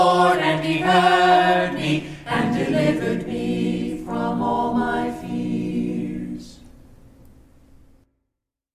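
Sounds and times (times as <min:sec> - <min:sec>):
a cappella scripture song: 0:00.0 - 0:06.8.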